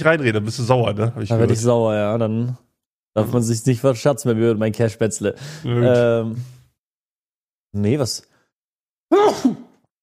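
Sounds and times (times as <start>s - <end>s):
speech: 0.0s - 6.6s, 7.7s - 8.3s, 9.1s - 9.6s
loud sneeze: 9.1s - 9.8s.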